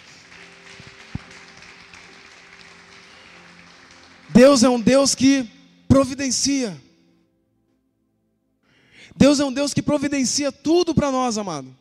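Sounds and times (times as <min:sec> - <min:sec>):
audience applauding: 0:00.0 - 0:04.9
speech: 0:04.3 - 0:06.9, 0:09.2 - 0:11.7.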